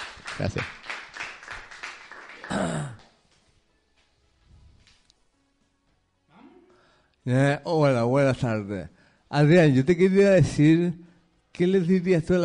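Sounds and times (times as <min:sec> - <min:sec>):
audience applause: 0:00.0 - 0:03.0
speech: 0:00.4 - 0:00.8, 0:07.2 - 0:12.4.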